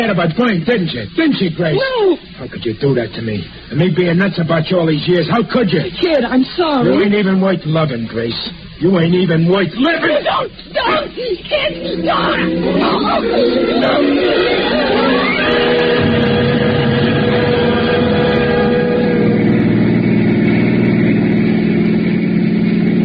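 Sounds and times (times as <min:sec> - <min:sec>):
speech: 0:00.0 - 0:15.2
car engine droning behind a truck: 0:11.8 - 0:23.0.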